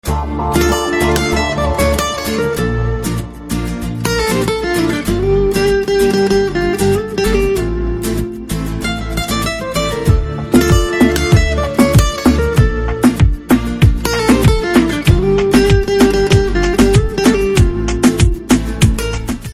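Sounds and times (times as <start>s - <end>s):
background music ringtone: 0.0s - 19.5s.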